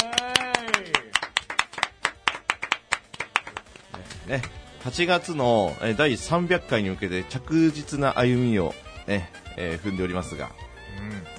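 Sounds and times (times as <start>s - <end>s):
group of people clapping: 0.0s - 4.8s
speech: 4.3s - 10.6s.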